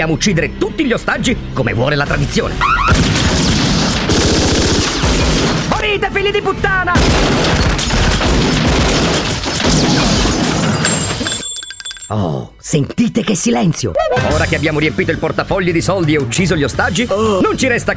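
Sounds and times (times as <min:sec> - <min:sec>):
speech: 0:00.0 - 0:03.2, 0:05.8 - 0:07.8, 0:12.1 - 0:17.9
gunfire in a shootout: 0:02.9 - 0:05.7, 0:07.0 - 0:10.8.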